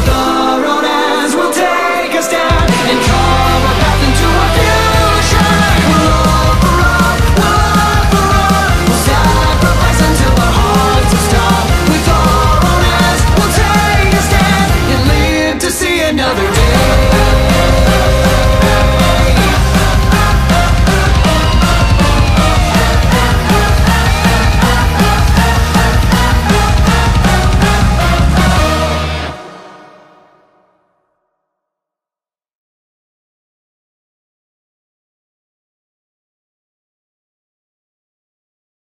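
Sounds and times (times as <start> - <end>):
English dub cover song: 0.0 - 30.7.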